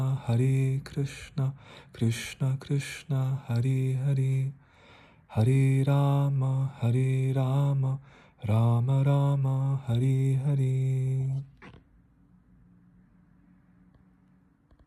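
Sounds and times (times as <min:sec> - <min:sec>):
mantra chanting: 0:00.0 - 0:04.6, 0:05.3 - 0:11.6.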